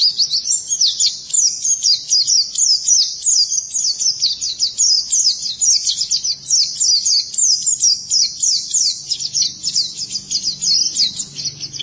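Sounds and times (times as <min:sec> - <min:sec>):
white-eye singing high twittering notes: 0:00.0 - 0:11.8
faint low hum: 0:05.4 - 0:11.8.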